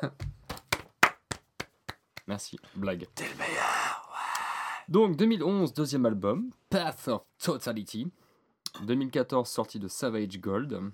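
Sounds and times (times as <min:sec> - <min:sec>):
speech: 0:00.0 - 0:00.3, 0:02.3 - 0:03.8, 0:04.9 - 0:10.9
hand clapping: 0:00.2 - 0:02.4.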